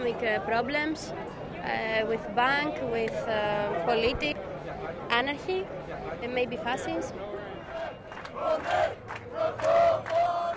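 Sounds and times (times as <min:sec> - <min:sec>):
speech: 0:00.1 - 0:04.4, 0:05.1 - 0:07.3, 0:08.4 - 0:09.6
crowd cheering for party leader: 0:07.2 - 0:10.5.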